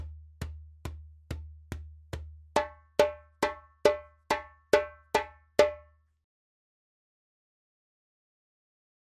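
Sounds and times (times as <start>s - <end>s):
djembe drumming: 0.0s - 5.9s.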